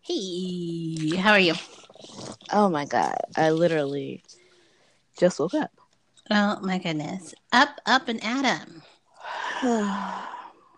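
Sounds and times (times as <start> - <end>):
speech: 0.0 - 1.7, 2.5 - 4.4, 5.2 - 10.7
person yawning: 9.3 - 10.6.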